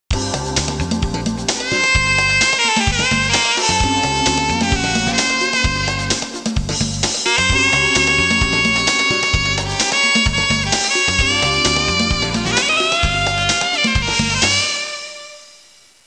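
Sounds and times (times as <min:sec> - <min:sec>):
urban music: 0:00.1 - 0:15.0.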